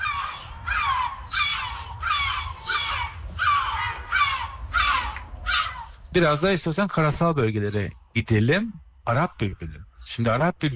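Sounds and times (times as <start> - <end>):
yellow-legged gull calls: 0.0 - 6.0
low rumbling background: 0.0 - 10.7
speech: 6.1 - 10.7.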